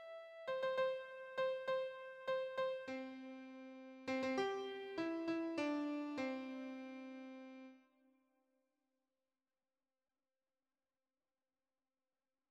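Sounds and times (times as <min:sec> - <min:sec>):
gospel hymn on keyboard: 0:00.5 - 0:07.7.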